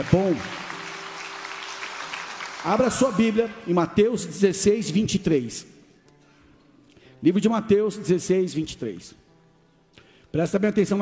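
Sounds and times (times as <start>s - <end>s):
speech: 0.0s - 0.6s, 2.6s - 5.8s, 7.2s - 9.2s, 10.3s - 11.0s
audience applause: 0.0s - 3.8s.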